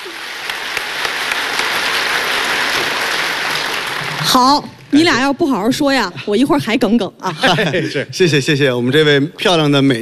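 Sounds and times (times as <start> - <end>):
audience applause: 0.0 - 4.9
speech: 4.2 - 9.9
laughter: 7.2 - 8.2.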